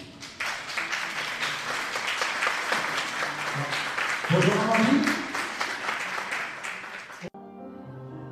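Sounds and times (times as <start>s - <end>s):
audience applause: 0.1s - 7.4s
speech: 4.3s - 5.2s.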